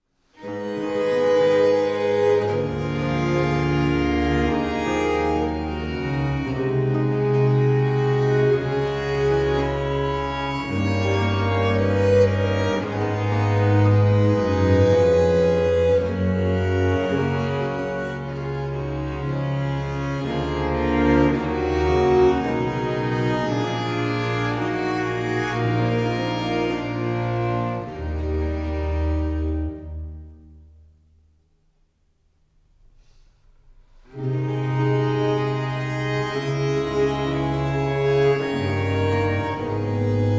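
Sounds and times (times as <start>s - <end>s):
instrumental sonata in A minor: 0.0s - 32.3s, 33.0s - 40.3s.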